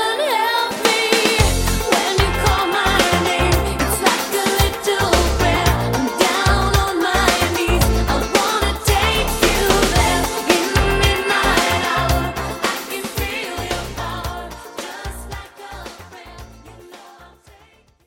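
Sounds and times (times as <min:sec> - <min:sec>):
DJ scratch intro outro: 0:00.8 - 0:14.2.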